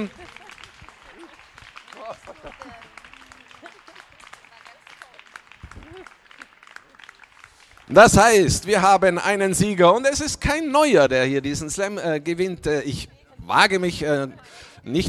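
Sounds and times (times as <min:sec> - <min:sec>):
speech: 0:00.0 - 0:00.2, 0:02.1 - 0:03.0, 0:07.9 - 0:15.0
audience applause: 0:00.0 - 0:09.2
laughter: 0:00.0 - 0:09.9, 0:11.2 - 0:15.0.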